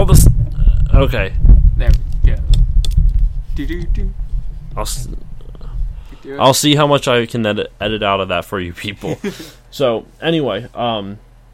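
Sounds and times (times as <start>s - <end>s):
pop filter being fitted onto a microphone: 0.0s - 6.2s
low bumpy rumble: 0.0s - 6.4s
speech: 1.0s - 2.0s, 3.6s - 4.2s, 4.8s - 5.3s, 6.2s - 11.2s.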